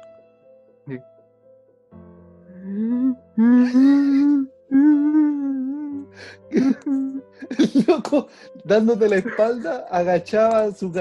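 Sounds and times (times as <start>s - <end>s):
speech: 0.9s - 1.1s, 2.7s - 4.5s, 8.0s - 11.0s
person imitating sorrowful sobbing: 2.7s - 8.0s
laughter: 6.6s - 8.2s, 9.1s - 9.8s.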